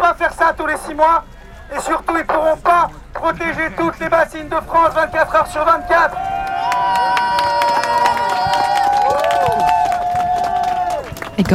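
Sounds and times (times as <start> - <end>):
speech: 0.5 - 6.3
laughter: 0.6 - 9.8
crowd applauding at a protest: 1.7 - 11.5
crowd shouting and whooping at a protest: 3.4 - 11.5.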